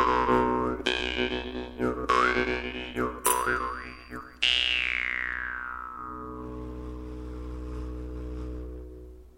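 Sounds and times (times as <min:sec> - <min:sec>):
vargan jaw harp: 0:00.0 - 0:06.8.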